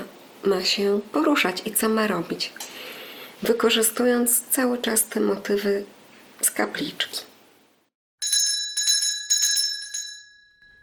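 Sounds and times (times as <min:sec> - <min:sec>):
speech: 0:00.4 - 0:02.7, 0:03.4 - 0:07.3
small bright bell ringing: 0:08.2 - 0:10.8.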